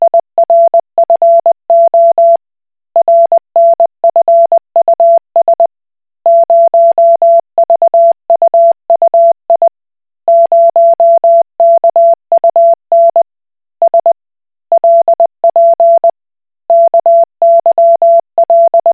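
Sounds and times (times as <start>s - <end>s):
Koch Morse code beeps: 0.5s - 2.4s, 3.0s - 5.7s, 6.3s - 9.7s, 10.3s - 13.2s, 14.8s - 16.1s, 16.7s - 18.9s.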